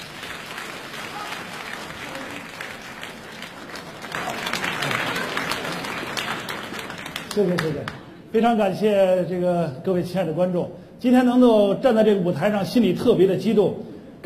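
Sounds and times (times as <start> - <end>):
audience applause at a sketch comedy contest: 0.0 - 8.0
speech: 7.4 - 14.2.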